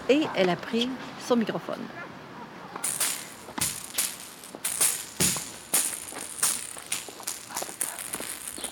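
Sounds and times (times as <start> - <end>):
speech: 0.1 - 2.1
blind tennis ball struck and bouncing in a park: 2.8 - 8.6.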